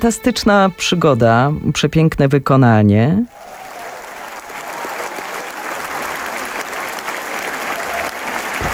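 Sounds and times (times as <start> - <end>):
speech: 0.0 - 3.5
concert audience applause in a standing ovation after a performance: 3.3 - 8.7.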